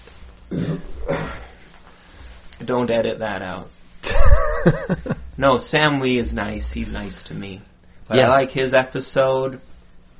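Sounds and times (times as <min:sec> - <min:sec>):
burp: 0:00.5 - 0:01.5
speech: 0:02.6 - 0:03.8, 0:04.6 - 0:09.7.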